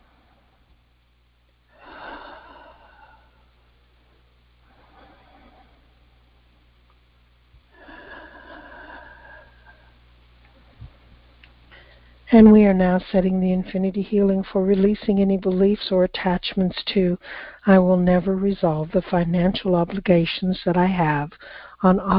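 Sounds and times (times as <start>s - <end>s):
slow deep breaths during a guided healing session: 1.7s - 3.7s, 4.6s - 6.2s, 7.6s - 11.0s, 11.7s - 12.3s, 17.2s - 17.6s, 21.4s - 21.8s
speech: 12.3s - 22.1s.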